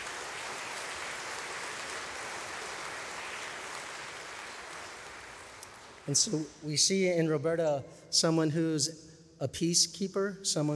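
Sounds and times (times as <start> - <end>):
audience applause: 0.0 - 6.5
speech: 6.1 - 10.7.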